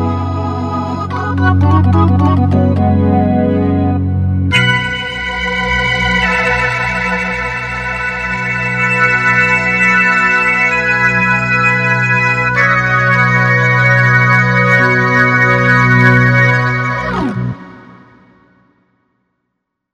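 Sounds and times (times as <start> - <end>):
Hammond organ through a tube Leslie speaker: 0.0 - 18.4.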